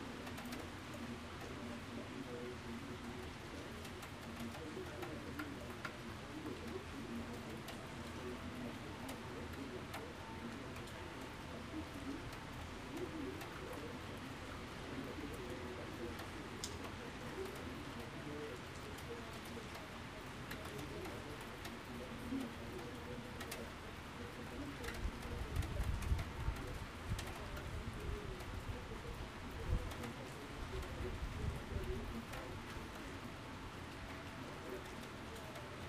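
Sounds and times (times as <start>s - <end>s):
rain on a balcony in Lyon: 0.0s - 35.8s
television playing: 0.0s - 35.8s.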